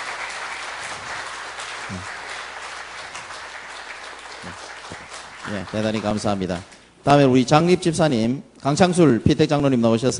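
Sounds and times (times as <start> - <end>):
audience applause: 0.0 - 6.7
speech: 1.9 - 2.2, 5.5 - 10.1.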